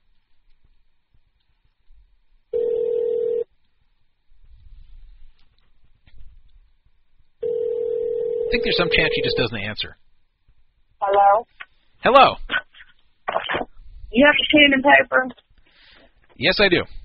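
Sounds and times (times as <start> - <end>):
telephone ringback tone: 2.6 - 3.5, 7.4 - 9.4
speech: 8.5 - 10.0, 12.0 - 12.5, 14.2 - 15.4, 16.4 - 17.0.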